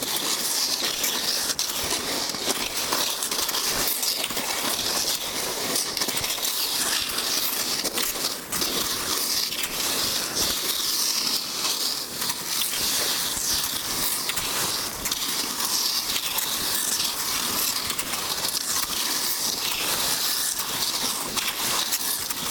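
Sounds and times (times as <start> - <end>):
cross-country skiing: 0.0 - 22.4.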